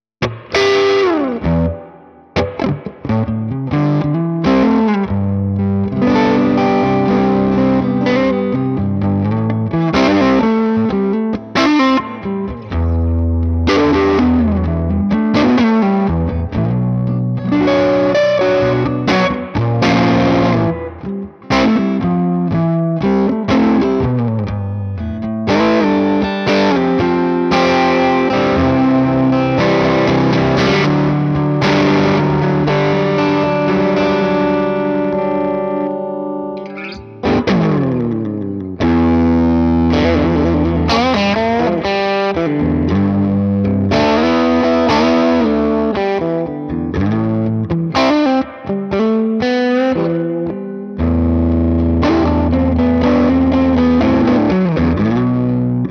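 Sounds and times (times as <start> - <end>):
electric guitar through Morgan Amps SW50R amplifier on crunch with reverb: 0.2 - 55.8.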